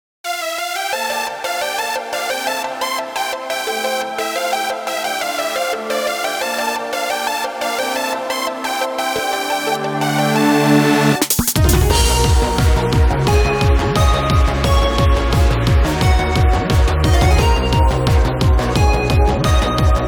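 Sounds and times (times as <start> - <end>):
instrumental game music: 0.3 - 20.0.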